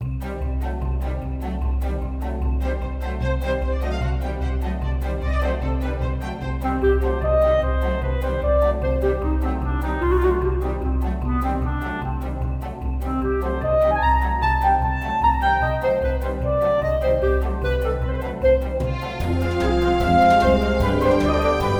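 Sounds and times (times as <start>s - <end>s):
orchestra: 0.0s - 21.7s.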